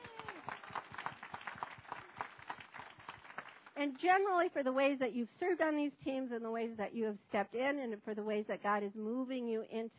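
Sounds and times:
audience clapping: 0.0s - 4.1s
speech: 3.8s - 9.9s.

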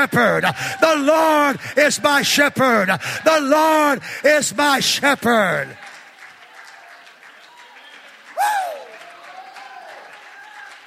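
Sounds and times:
speech: 0.0s - 5.8s
audience clapping hands: 4.4s - 10.8s.

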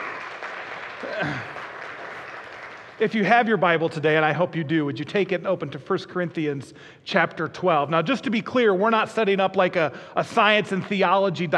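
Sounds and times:
audience applause: 0.0s - 3.4s
speech: 1.1s - 1.6s, 3.0s - 11.5s.

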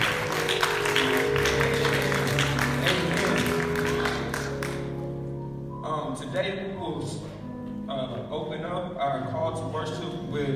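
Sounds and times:
audience hand clapping: 0.0s - 5.0s
sustained low musical tone: 0.0s - 10.5s
speech: 8.1s - 10.5s.

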